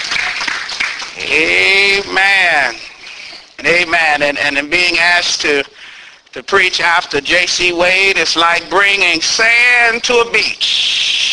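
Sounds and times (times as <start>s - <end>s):
audience applauding: 0.0s - 2.0s
speech: 1.3s - 2.8s, 3.6s - 11.0s.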